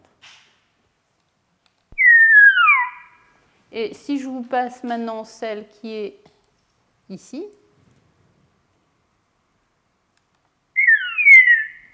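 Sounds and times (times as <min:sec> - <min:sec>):
recorded bird song in a dialect variant: 0:02.0 - 0:03.2, 0:10.8 - 0:11.9
speech: 0:03.7 - 0:06.3, 0:07.1 - 0:07.6.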